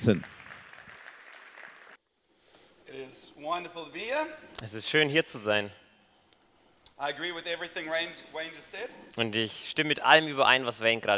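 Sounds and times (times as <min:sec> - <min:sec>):
speech: 0:00.0 - 0:00.4, 0:03.1 - 0:05.8, 0:07.0 - 0:11.1
audience applause welcoming speaker to stage: 0:00.0 - 0:02.0.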